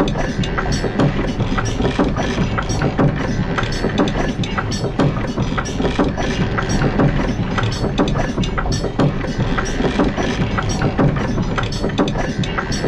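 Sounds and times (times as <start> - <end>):
clock loop: 0.0 - 12.8
mechanical clicks: 0.0 - 12.8
small metal steampunk machine clanks: 0.0 - 12.8.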